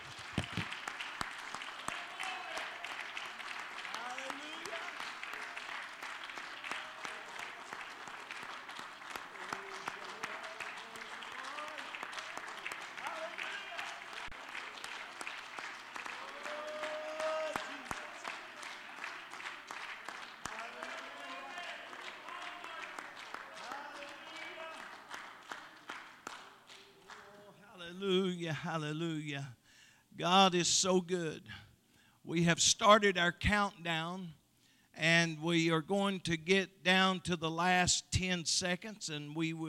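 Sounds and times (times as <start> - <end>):
audience clapping hands: 0.0 - 27.6
speech: 28.0 - 29.6, 30.2 - 31.6, 32.3 - 34.4, 35.0 - 39.6.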